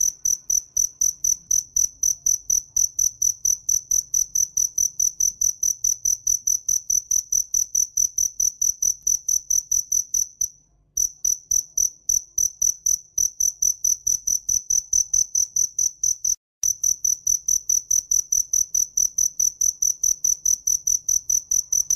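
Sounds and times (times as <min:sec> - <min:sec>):
cricket chirping: 0:00.0 - 0:21.9.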